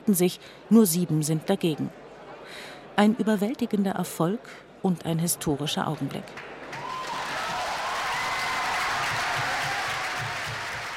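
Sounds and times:
speech: 0.1 - 6.8
delegates cheering and applauding: 6.6 - 10.9.

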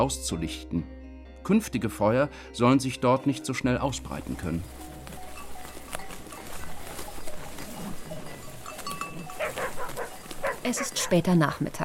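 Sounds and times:
speech: 0.0 - 4.9, 10.7 - 11.8
herd of sheep or goats: 3.4 - 11.8.

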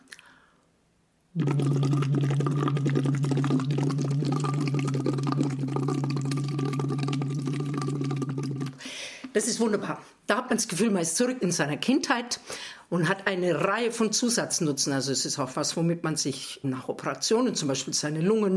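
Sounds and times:
air blown through a tube into a water bottle: 1.3 - 9.4
speech: 1.4 - 2.3, 9.4 - 18.5.

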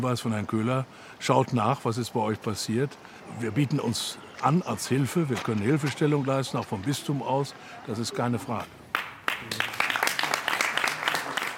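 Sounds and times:
speech: 0.0 - 8.8
audience applause: 4.9 - 11.5.

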